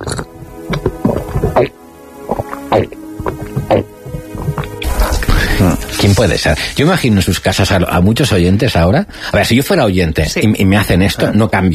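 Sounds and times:
person drinking water, gulping: 0.0 - 4.8
speech: 6.1 - 11.7.

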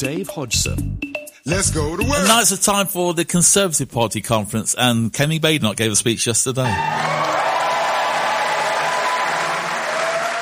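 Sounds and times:
speech: 0.0 - 7.4
crowd applauding a speech: 6.6 - 10.3.

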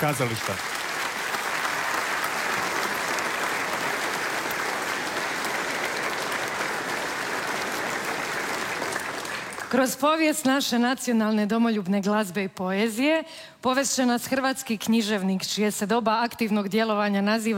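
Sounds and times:
speech: 0.0 - 0.8, 9.7 - 17.5
audience applause at the Croatian National Theatre 130th-anniversary celebration: 0.0 - 9.9.

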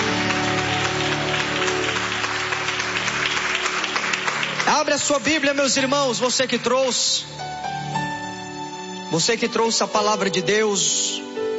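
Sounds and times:
audience clapping hands: 0.0 - 7.0
speech: 4.7 - 7.5, 9.1 - 11.2.

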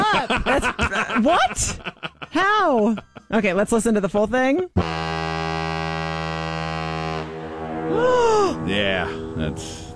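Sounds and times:
laughter: 0.0 - 3.3
speech: 1.2 - 1.8, 2.4 - 5.1, 7.9 - 9.9
ship's horn blast: 4.8 - 9.9.

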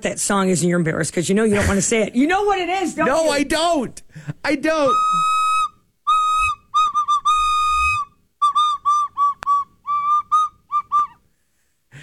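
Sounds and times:
speech: 0.0 - 5.3
recorder played live in a studio: 4.8 - 11.2.

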